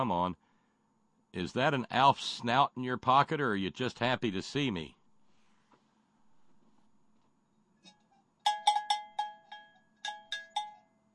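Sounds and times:
speech: 0.0 - 0.4, 1.3 - 5.0
cowbell struck: 8.4 - 10.9.

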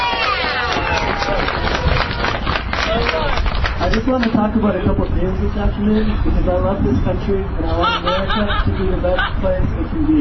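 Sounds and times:
audience applause: 0.0 - 4.3
speech: 4.0 - 10.1
laughter: 7.6 - 9.6.

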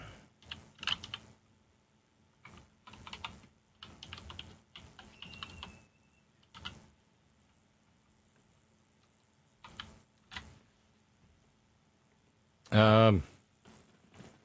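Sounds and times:
typing on a computer keyboard: 0.4 - 1.2, 2.4 - 5.8, 6.4 - 6.8, 9.6 - 10.5.

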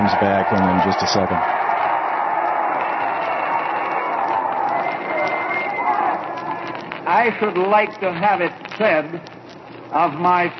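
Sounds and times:
crowd shouting and cheering at a rally: 0.0 - 8.7
speech: 0.1 - 1.7, 7.2 - 10.5.

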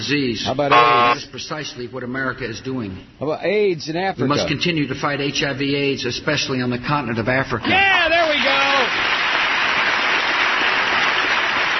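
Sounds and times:
speech: 0.0 - 8.5
audience applause after a speech line: 8.2 - 11.7.

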